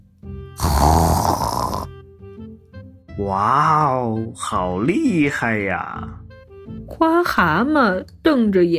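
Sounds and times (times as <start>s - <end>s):
pig snoring: 0.6s - 2.0s
speech: 3.2s - 6.2s, 6.9s - 8.7s.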